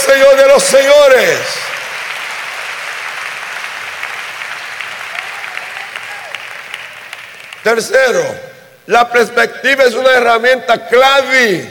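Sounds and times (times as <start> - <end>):
speech: 0.1 - 1.8, 7.6 - 11.6
audience applause: 1.2 - 7.7.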